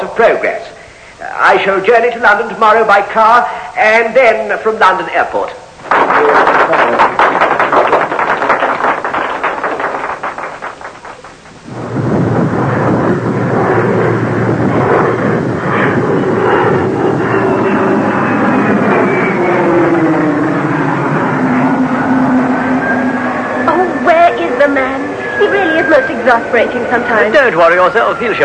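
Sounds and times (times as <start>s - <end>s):
speech: 0.2s - 7.2s, 26.5s - 28.4s
airplane jet engines roaring on the tarmac before take-off: 5.9s - 28.4s.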